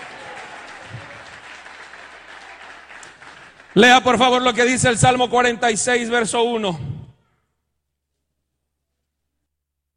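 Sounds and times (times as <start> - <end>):
audience applause: 0.0 - 4.6
speech: 3.8 - 7.0.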